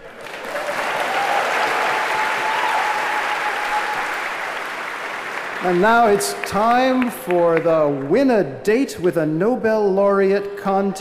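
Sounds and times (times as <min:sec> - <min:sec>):
audience applause: 0:00.0 - 0:08.1
speech: 0:05.6 - 0:10.9.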